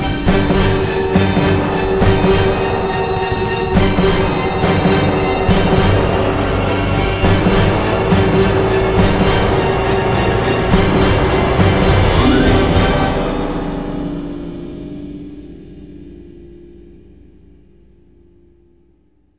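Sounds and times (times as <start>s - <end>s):
high-speed chase: 0.0s - 14.1s.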